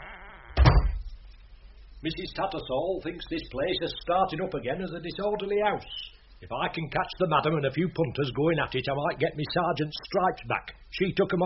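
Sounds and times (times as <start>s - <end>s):
hum: 0.0s - 11.4s
door swinging shut with solid low thud: 0.5s - 1.1s
speech: 2.0s - 11.4s.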